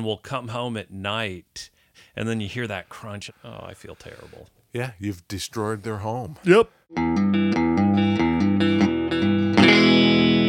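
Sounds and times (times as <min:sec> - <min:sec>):
speech: 0:00.0 - 0:08.1
Gretsch electric guitar chords through distortion and effects: 0:06.9 - 0:10.4.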